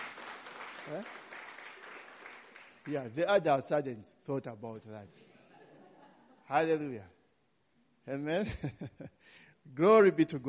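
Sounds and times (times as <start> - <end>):
faint hand clapping from an audience at a religious talk: 0.0 - 3.0
speech: 0.9 - 1.2, 2.8 - 5.3, 6.5 - 7.2, 8.0 - 10.4.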